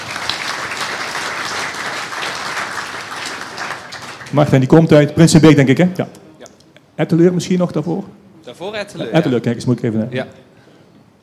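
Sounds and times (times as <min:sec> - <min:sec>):
audience applause: 0:00.0 - 0:04.7
speech: 0:04.3 - 0:06.2, 0:07.0 - 0:10.5.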